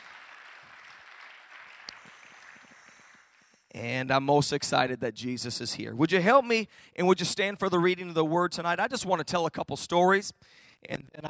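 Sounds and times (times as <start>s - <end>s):
audience clapping hands: 0.0s - 3.7s
speech: 3.8s - 11.2s.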